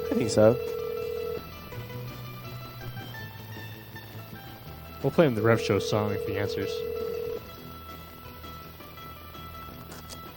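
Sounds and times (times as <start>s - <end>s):
higher telephone beep over a line: 0.0s - 1.7s, 5.4s - 7.5s
speech: 0.2s - 0.8s, 5.0s - 7.0s.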